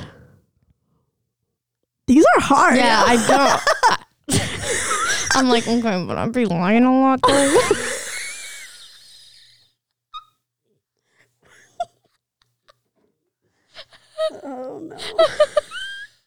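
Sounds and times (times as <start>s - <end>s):
speech: 2.1s - 3.7s, 5.4s - 7.9s
wheezy laughter: 3.0s - 5.4s, 7.2s - 9.6s, 15.0s - 16.2s.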